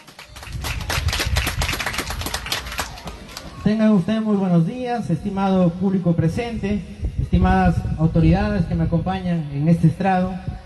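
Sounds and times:
crowd clapping: 0.0s - 3.6s
speech: 3.6s - 10.5s.

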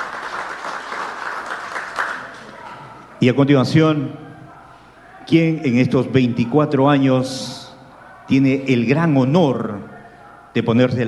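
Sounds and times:
audience applause: 0.0s - 2.8s
speech: 3.2s - 4.2s, 5.3s - 7.6s, 8.3s - 9.9s, 10.6s - 11.0s.

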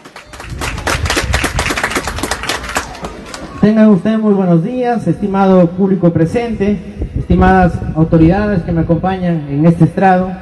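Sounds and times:
audience applause: 0.0s - 3.6s
speech: 3.6s - 10.4s.

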